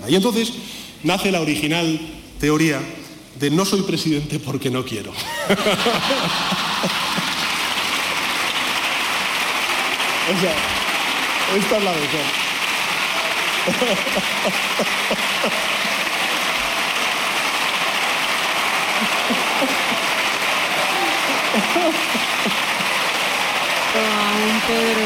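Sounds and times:
speech: 0:00.0 - 0:07.0, 0:10.3 - 0:10.8, 0:11.5 - 0:12.4, 0:13.6 - 0:15.8, 0:21.7 - 0:22.7, 0:24.0 - 0:25.0
laughter: 0:05.2 - 0:08.0, 0:13.1 - 0:25.0
applause in parliament chamber: 0:05.4 - 0:25.0.

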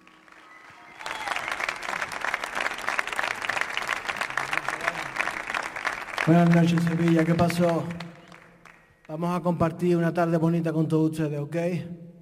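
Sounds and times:
large crowd applauding: 0:00.0 - 0:09.2
shouts: 0:00.4 - 0:01.7
speech: 0:06.3 - 0:08.0, 0:09.2 - 0:12.0.

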